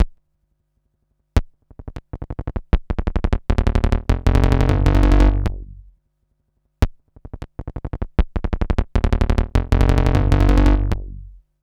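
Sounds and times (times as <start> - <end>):
synth bassline: 3.3 - 5.9, 7.6 - 11.4.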